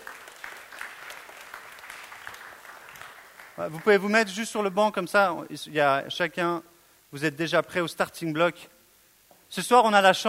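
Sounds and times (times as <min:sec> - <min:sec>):
audience applauding: 0:00.0 - 0:04.4
speech: 0:03.6 - 0:08.7, 0:09.5 - 0:10.2.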